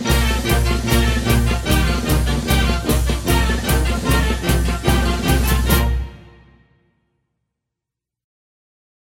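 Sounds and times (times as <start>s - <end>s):
instrumental trotting march: 0.0s - 6.8s.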